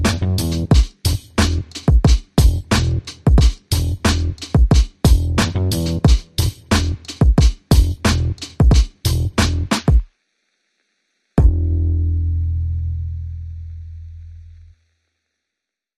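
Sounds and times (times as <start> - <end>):
bass: 0.0 - 1.8, 2.4 - 7.1, 7.7 - 9.8, 11.4 - 14.8
drums: 0.0 - 10.1.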